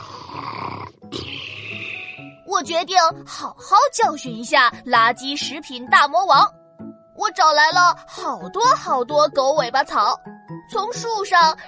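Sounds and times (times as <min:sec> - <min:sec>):
loud snoring while sleeping: 0:00.0 - 0:02.4
speech: 0:02.6 - 0:06.6, 0:07.2 - 0:11.6.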